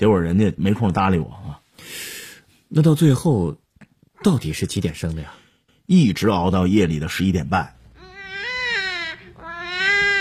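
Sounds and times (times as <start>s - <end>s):
speech: 0.0s - 1.9s, 2.7s - 3.6s, 4.2s - 7.8s
newborn baby crying in a delivery room: 8.0s - 10.1s.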